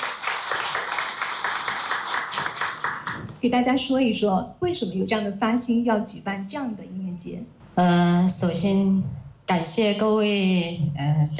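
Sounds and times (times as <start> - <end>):
audience applause: 0.0 - 3.4
speech: 3.4 - 11.3.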